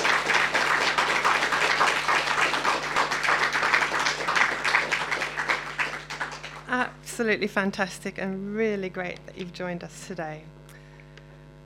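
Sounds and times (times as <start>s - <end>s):
crowd applauding: 0.0s - 6.9s
speech: 7.2s - 10.6s.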